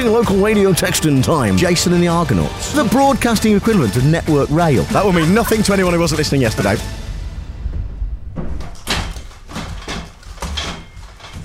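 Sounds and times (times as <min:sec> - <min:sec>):
speech: 0:00.0 - 0:07.0
low rumble: 0:04.9 - 0:10.3
door banging as someone forces through a barricade at a studio door: 0:07.6 - 0:11.4.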